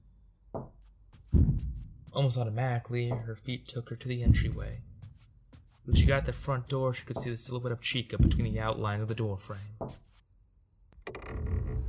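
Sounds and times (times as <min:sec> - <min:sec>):
thumping on the porch: 0:00.6 - 0:02.2, 0:04.2 - 0:05.2, 0:05.9 - 0:06.5, 0:08.2 - 0:08.7
speech: 0:00.6 - 0:04.9, 0:05.8 - 0:10.1.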